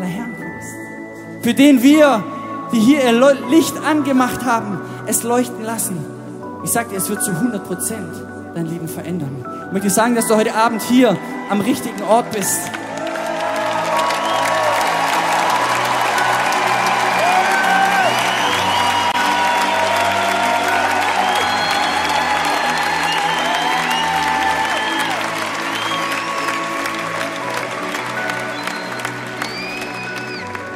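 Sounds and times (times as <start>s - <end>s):
speech: 1.4s - 12.8s
large crowd applauding: 11.6s - 30.7s
cheers and whoops: 12.6s - 30.7s.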